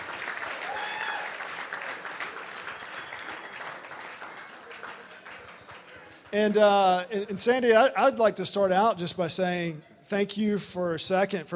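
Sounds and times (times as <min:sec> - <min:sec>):
audience applause: 0:00.0 - 0:06.3
speech: 0:06.3 - 0:11.5.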